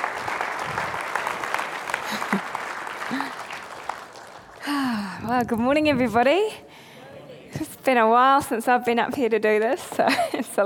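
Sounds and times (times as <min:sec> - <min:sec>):
audience applause welcoming a speaker to the stage: 0:00.0 - 0:05.0
speech: 0:05.4 - 0:06.7, 0:07.9 - 0:10.6.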